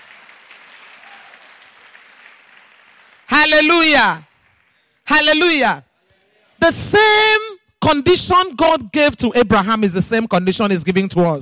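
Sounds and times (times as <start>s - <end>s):
audience clapping: 0.0s - 5.1s
speech: 3.5s - 4.3s, 5.1s - 5.9s, 6.6s - 11.4s.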